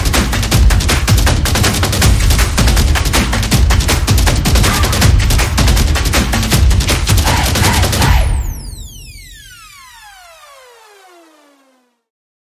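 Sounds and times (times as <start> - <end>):
upbeat percussion: 0.0 - 9.3.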